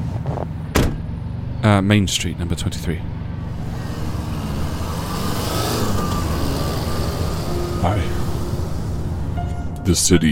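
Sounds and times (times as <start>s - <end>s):
road noise: 0.0s - 10.3s
taxi engine pulling up in a street: 0.0s - 10.3s
speech: 1.6s - 3.2s, 7.8s - 8.2s, 9.9s - 10.3s.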